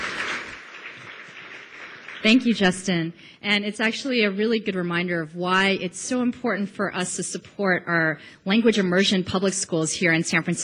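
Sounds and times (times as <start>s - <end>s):
audience applause: 0.0s - 2.5s
speech: 2.2s - 10.6s.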